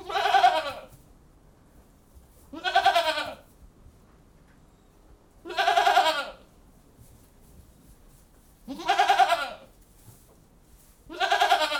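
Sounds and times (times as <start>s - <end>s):
goats bleating in a goat house: 0.0s - 0.9s, 2.5s - 3.4s, 5.5s - 6.4s, 8.7s - 9.7s, 11.1s - 11.7s.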